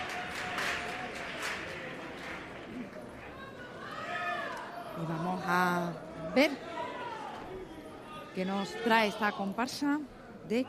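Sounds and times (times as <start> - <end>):
theatre audience applause: 0.0 - 3.0
speech: 5.0 - 6.7, 8.4 - 10.6.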